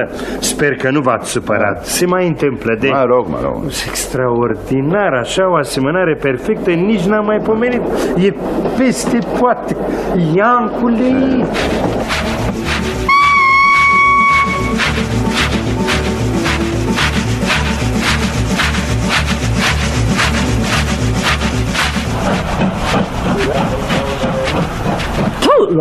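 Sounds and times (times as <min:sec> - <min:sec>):
speech: 0:00.0 - 0:12.3
old train rattling and jolting: 0:05.3 - 0:25.8.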